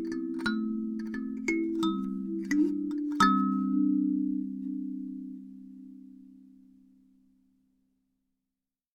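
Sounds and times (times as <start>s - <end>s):
C alto kalimba: 0.0s - 6.0s.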